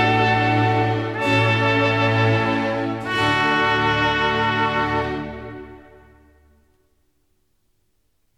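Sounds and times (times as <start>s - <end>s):
trumpet in a sinfonia: 0.0s - 6.7s.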